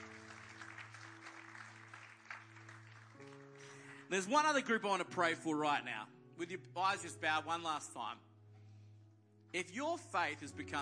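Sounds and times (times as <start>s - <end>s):
audience applause: 0.0s - 3.8s
speech: 4.1s - 8.3s, 9.5s - 10.8s.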